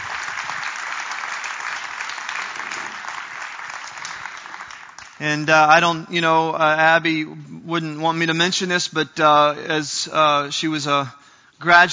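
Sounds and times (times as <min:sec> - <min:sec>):
audience applause welcoming a speaker to the platform: 0:00.0 - 0:05.3
speech: 0:05.2 - 0:11.9.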